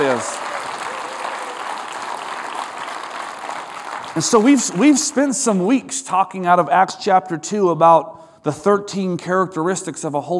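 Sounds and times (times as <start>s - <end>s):
audience applause: 0.0s - 5.6s
speech: 4.2s - 10.3s.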